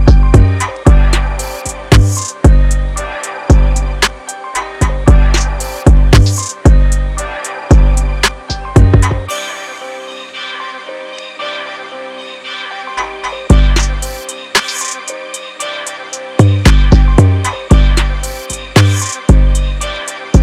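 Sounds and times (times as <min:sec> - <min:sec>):
drum kit: 0:00.0 - 0:07.1, 0:07.7 - 0:09.3, 0:13.5 - 0:15.1, 0:16.4 - 0:19.7.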